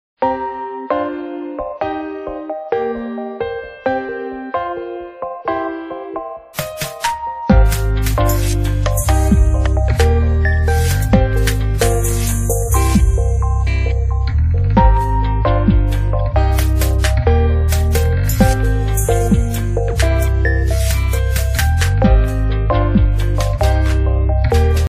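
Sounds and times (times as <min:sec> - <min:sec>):
piano: 0:00.2 - 0:24.8.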